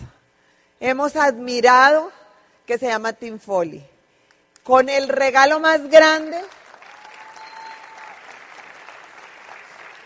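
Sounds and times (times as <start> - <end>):
speech: 0.8 - 3.9, 4.6 - 6.6
audience applause: 6.6 - 10.0.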